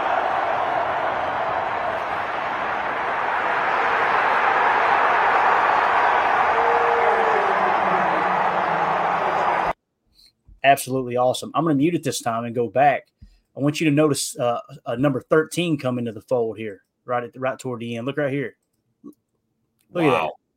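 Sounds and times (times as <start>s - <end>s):
stadium crowd cheering at Lambeau Field South: 0.0s - 9.8s
speech: 10.7s - 19.2s, 19.9s - 20.4s.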